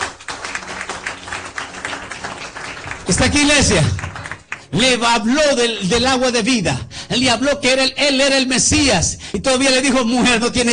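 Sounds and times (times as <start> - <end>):
church congregation rhythmic clapping: 0.0 - 5.0
speech: 3.1 - 4.1, 4.7 - 10.7.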